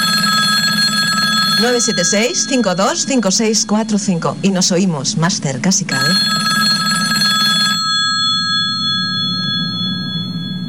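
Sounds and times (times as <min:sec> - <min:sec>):
alarm clock bell ringing: 0:00.0 - 0:04.3, 0:05.9 - 0:10.6
steady low hum: 0:01.6 - 0:05.6, 0:08.0 - 0:10.6
speech: 0:01.6 - 0:06.7.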